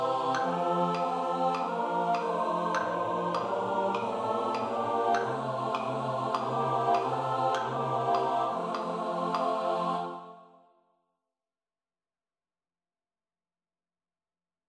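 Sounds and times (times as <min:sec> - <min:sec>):
SATB four-part choir singing: 0:00.0 - 0:10.7.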